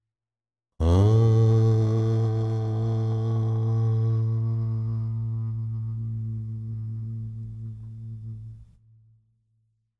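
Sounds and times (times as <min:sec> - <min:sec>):
bhajan devotional singing: 0:00.8 - 0:07.0.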